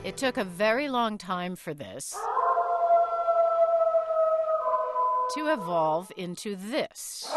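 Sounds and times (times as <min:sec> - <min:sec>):
speech: 0:00.2 - 0:02.4, 0:05.3 - 0:07.3
gray wolf howling: 0:02.1 - 0:06.1.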